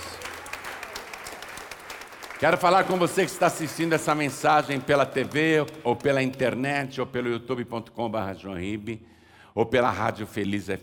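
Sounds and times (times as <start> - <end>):
applause: 0.0 - 6.6
speech: 2.4 - 10.8.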